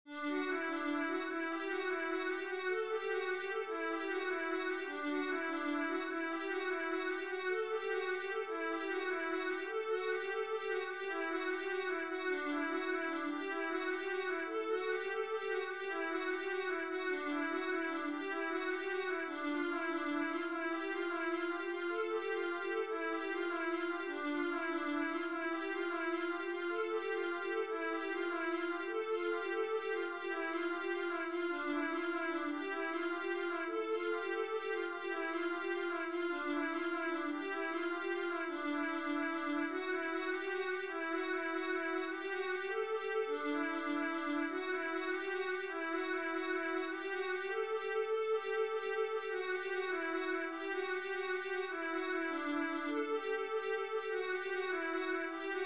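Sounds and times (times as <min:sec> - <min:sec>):
viola etude: 0:00.3 - 0:55.6.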